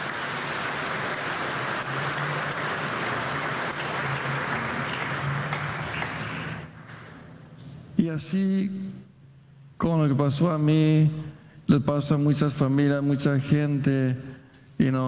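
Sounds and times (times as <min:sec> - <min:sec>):
audience applauding: 0:00.0 - 0:06.8
speech: 0:08.0 - 0:08.8, 0:09.8 - 0:15.0.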